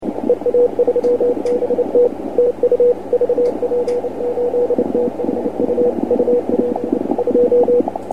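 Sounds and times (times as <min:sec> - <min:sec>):
CW Morse code beeps: 0:00.2 - 0:07.9.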